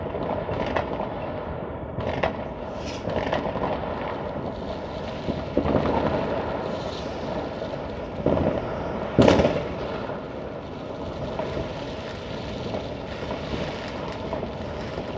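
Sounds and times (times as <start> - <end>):
New Year's Eve fireworks: 0.0 - 15.1.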